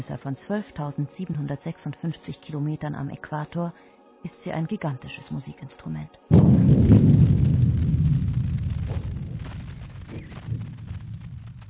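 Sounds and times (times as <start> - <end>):
speech: 0.0 - 7.4
earth's free oscillations from Bolivia earthquake, deep droning low rumble: 6.3 - 11.6.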